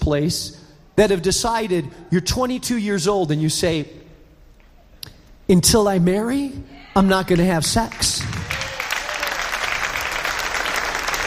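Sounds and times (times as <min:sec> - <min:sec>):
speech: 0:00.0 - 0:04.0, 0:05.5 - 0:08.6
audience clapping: 0:07.3 - 0:11.2.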